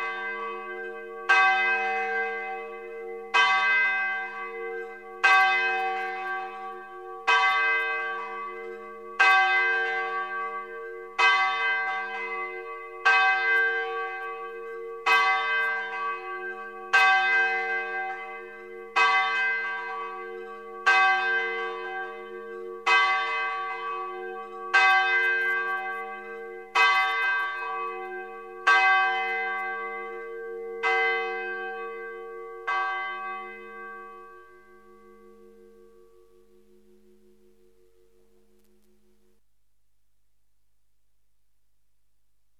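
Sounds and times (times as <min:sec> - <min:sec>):
bells ringing: 0:00.0 - 0:37.5.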